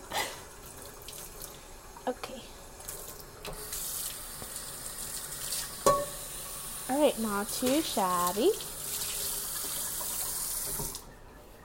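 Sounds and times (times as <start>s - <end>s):
speech: 2.1s - 2.6s, 3.4s - 3.7s, 6.9s - 8.7s
running tap water splashing into a sink: 2.8s - 11.0s
dishes clattering and scraping: 5.8s - 6.2s.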